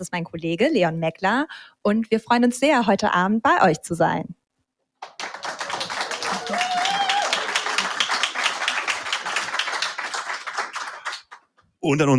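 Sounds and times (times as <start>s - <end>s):
speech: 0.0s - 4.4s, 11.8s - 12.1s
live audience applause in a hall: 5.0s - 11.5s.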